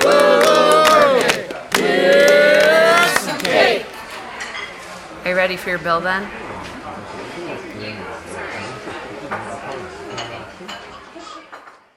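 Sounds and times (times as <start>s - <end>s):
birthday song: 0.0s - 3.9s.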